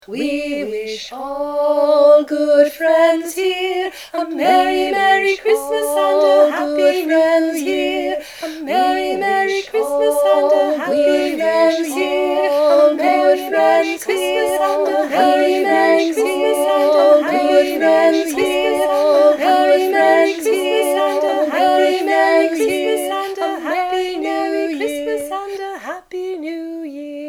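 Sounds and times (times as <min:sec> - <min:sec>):
Christmas round singing: 0:00.0 - 0:27.2.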